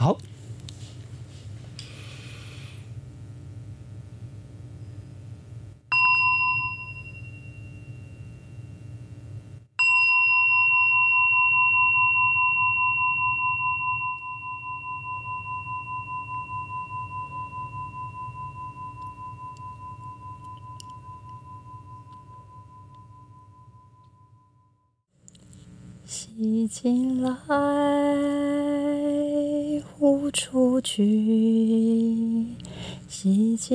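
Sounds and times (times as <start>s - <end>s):
low hum: 0.0s - 33.7s
speech: 0.1s - 0.3s, 26.4s - 28.4s, 30.3s - 33.7s
meditation bell ringing: 5.9s - 25.0s.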